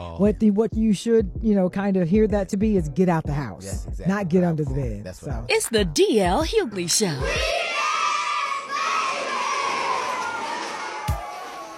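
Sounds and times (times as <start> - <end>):
speech: 0.2 - 7.7
children shouting at a swimming pool: 7.2 - 11.7.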